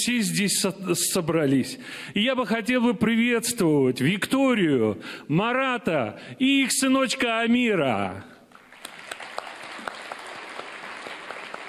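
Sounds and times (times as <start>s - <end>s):
speech: 0.0s - 8.3s
crowd clapping hands: 8.5s - 11.6s.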